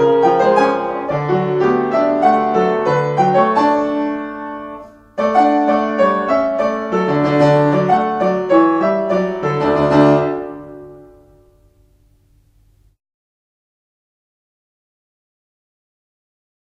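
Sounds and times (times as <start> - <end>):
prelude in D major: 0.0 - 11.7.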